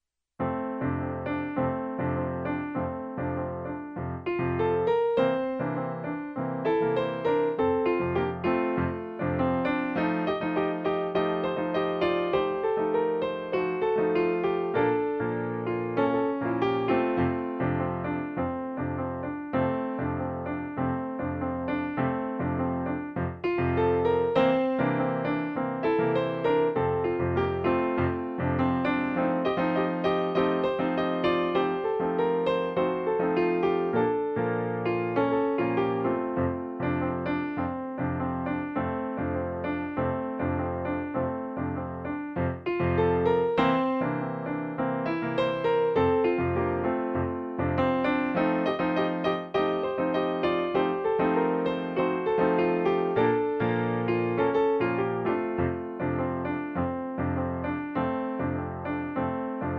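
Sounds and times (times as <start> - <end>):
Baião piano: 0.0 - 59.7.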